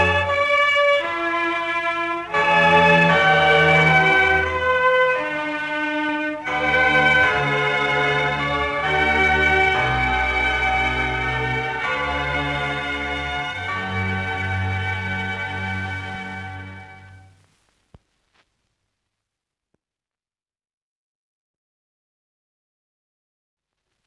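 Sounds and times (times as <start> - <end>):
orchestral concerto slow movement: 0.0 - 17.3.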